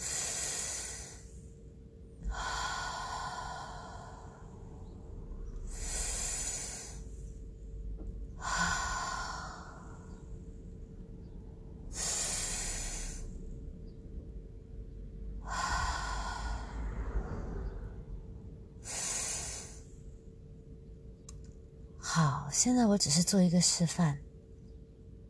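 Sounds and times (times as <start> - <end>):
slow deep breaths taken as a demonstration: 0.0 - 1.5, 2.2 - 13.7, 15.2 - 20.1
speech: 22.6 - 24.3.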